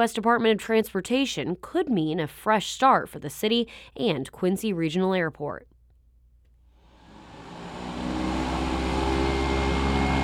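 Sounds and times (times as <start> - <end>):
speech: 0.0 - 5.7
airplanes taking off outside Quincy Regional Airport: 7.0 - 10.2.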